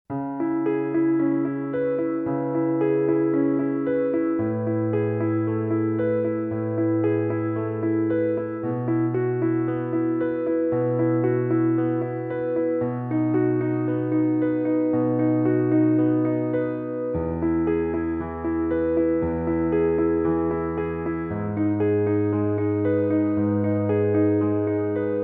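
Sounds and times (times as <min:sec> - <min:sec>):
solo piano: 0:00.1 - 0:25.2.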